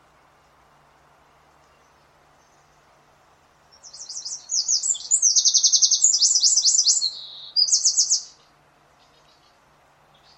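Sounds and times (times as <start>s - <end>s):
bird trilled chirps: 3.8s - 9.5s.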